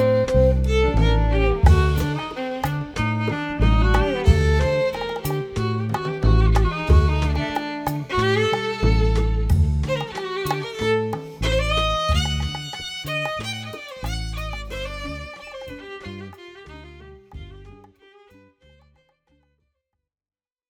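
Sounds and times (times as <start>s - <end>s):
concerto with rhythm changes: 0.0s - 13.2s.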